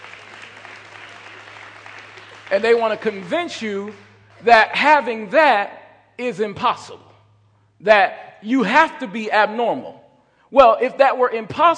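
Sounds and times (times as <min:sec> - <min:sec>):
audience clapping hands: 0:00.0 - 0:04.8
speech: 0:02.5 - 0:07.1, 0:07.8 - 0:11.7.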